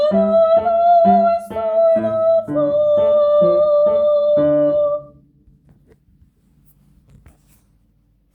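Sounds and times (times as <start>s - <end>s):
soprano and alto singing: 0.0s - 5.2s
piano: 0.0s - 5.4s.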